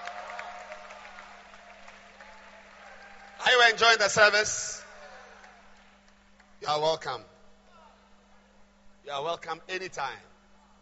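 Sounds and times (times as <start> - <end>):
audience clapping hands: 0.0 - 4.4, 5.0 - 6.6
speech: 3.7 - 4.8, 6.6 - 7.3, 9.0 - 10.3.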